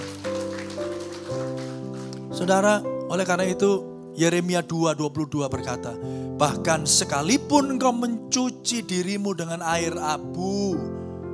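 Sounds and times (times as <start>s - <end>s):
audience applauding: 0.0s - 2.6s
speech: 2.4s - 11.0s.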